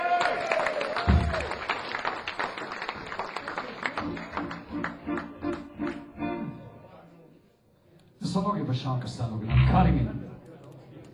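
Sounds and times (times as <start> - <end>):
audience applause greeting a performer: 0.0 - 6.1
speech: 8.4 - 10.2.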